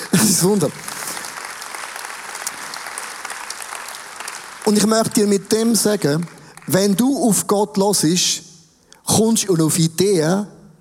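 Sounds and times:
laughter: 0.0s - 1.1s
audience applause: 0.0s - 7.0s
speech: 0.1s - 1.0s, 4.7s - 8.5s, 9.1s - 10.6s.

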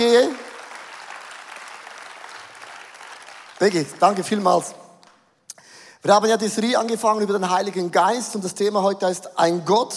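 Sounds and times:
audience applause: 0.0s - 4.4s
speech: 0.1s - 0.4s, 3.6s - 4.8s, 6.0s - 9.9s.

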